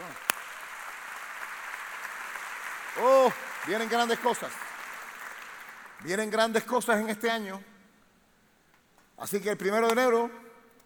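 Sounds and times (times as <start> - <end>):
audience applause: 0.0 - 6.1
speech: 3.0 - 4.6, 6.0 - 7.7, 9.2 - 10.4.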